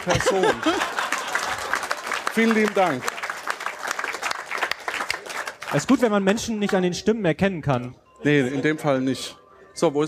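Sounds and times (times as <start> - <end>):
speech: 0.0 - 1.0, 2.4 - 3.1, 5.7 - 10.0
laughter: 0.0 - 2.1
audience applause: 0.0 - 6.8.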